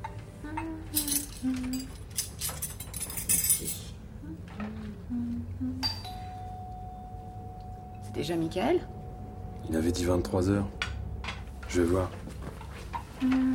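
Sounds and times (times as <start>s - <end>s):
low steady tonal hum: 0.0s - 13.5s
cutlery clinking as it is handed over: 1.0s - 3.9s
speech: 8.2s - 8.9s, 9.7s - 10.8s, 11.7s - 12.2s, 13.2s - 13.5s.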